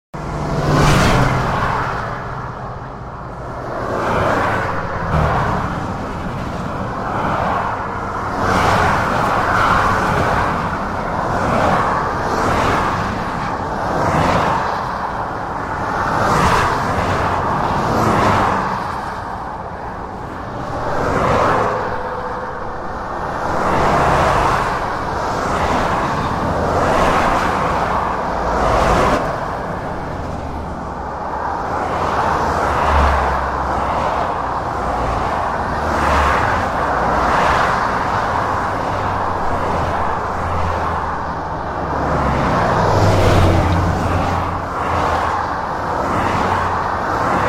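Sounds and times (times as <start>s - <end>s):
motorway traffic passing on a fast road: 0.1s - 47.4s.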